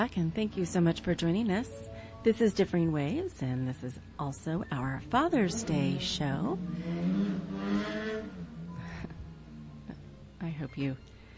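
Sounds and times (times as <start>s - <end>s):
speech: 0.0s - 8.0s, 10.5s - 11.1s
motorcycles driving past: 5.0s - 10.4s.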